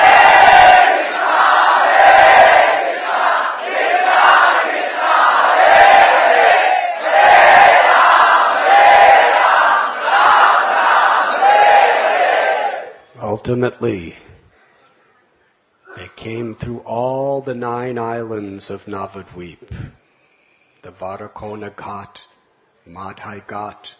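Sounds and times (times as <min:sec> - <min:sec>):
devotees loudly chanting the holy name: 0:00.0 - 0:13.0
speech: 0:13.5 - 0:14.3, 0:16.2 - 0:20.0, 0:20.8 - 0:22.3, 0:22.9 - 0:23.9.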